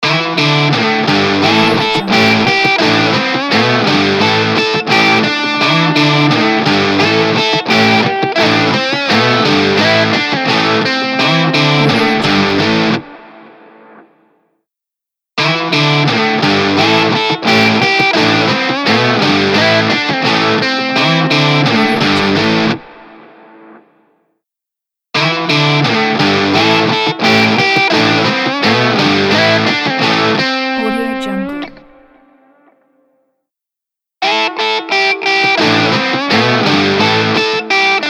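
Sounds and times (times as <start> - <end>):
rock guitar logo: 0.2 - 13.5, 15.4 - 23.4, 25.2 - 30.6, 34.3 - 38.0.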